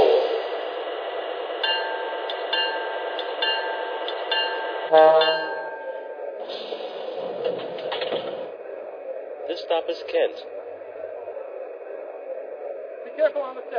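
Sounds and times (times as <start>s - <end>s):
train arriving on track 1 from Tacoma at the Kent stop: 0.0s - 12.0s
high tonal whine: 0.0s - 13.7s
speech: 4.9s - 5.4s, 9.7s - 10.6s, 13.2s - 13.7s.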